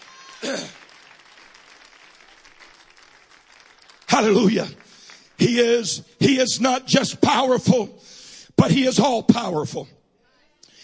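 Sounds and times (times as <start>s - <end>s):
audience clapping hands: 0.0s - 6.1s
speech: 4.2s - 4.8s, 5.4s - 10.0s.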